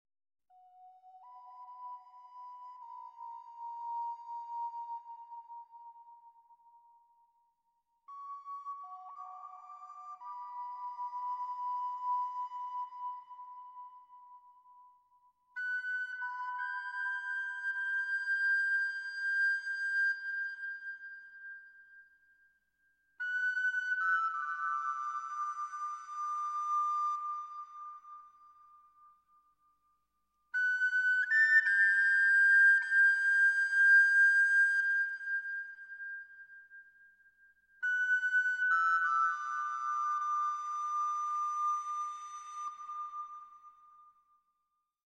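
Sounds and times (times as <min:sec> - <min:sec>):
flute: 0:00.5 - 0:44.8.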